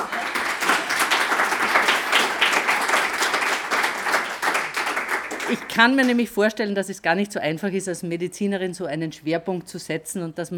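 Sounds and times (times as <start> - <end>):
audience applause: 0.0 - 6.2
speech: 5.5 - 10.5.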